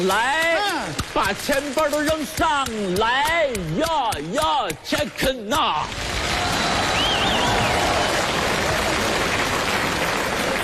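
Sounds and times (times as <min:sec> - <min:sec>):
speech: 0:00.0 - 0:06.5
large audience applause: 0:05.9 - 0:10.6
whistle: 0:06.6 - 0:08.1.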